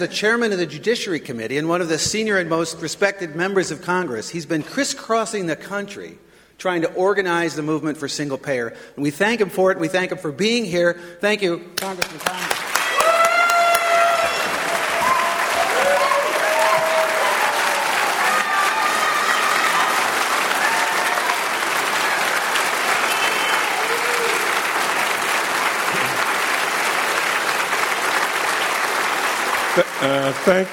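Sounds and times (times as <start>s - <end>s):
speech: 0.0s - 12.6s, 30.0s - 30.7s
audience applause: 11.8s - 30.7s.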